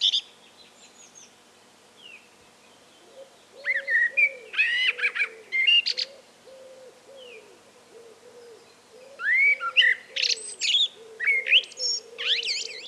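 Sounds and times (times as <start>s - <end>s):
common blackbird Turdus merula song: 0.0s - 12.8s.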